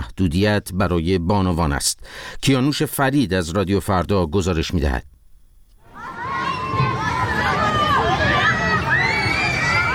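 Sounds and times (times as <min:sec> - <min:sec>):
speech: 0:00.2 - 0:05.1
children and families playing happily in a Tehran park: 0:05.8 - 0:09.9.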